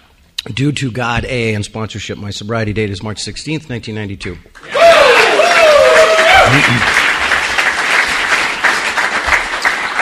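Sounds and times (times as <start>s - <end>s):
speech: 0.4s - 4.8s, 6.5s - 7.1s
audience applause at an evening recovery meeting: 4.6s - 10.0s.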